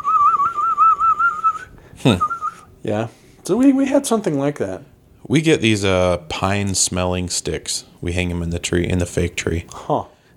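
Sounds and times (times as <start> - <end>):
person whistling an imitation of a chirping bird toy: 0.0 - 2.7
speech: 2.0 - 10.2.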